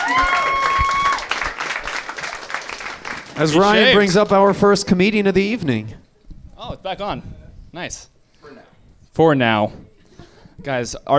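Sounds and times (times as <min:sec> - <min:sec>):
audience applause: 0:00.0 - 0:04.6
speech: 0:03.4 - 0:06.0, 0:06.7 - 0:08.6, 0:09.2 - 0:09.9, 0:10.6 - 0:11.1.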